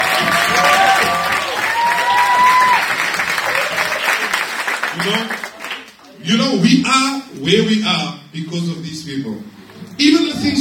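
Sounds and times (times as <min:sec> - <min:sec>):
people cheering and whooping: 0:00.0 - 0:04.4
audience applause: 0:00.0 - 0:06.0
speech: 0:06.2 - 0:10.5.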